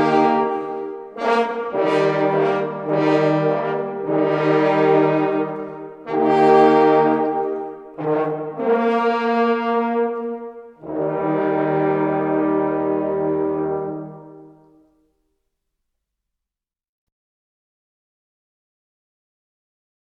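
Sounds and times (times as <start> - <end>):
hunting horn players playing hunting calls: 0.0 - 14.9.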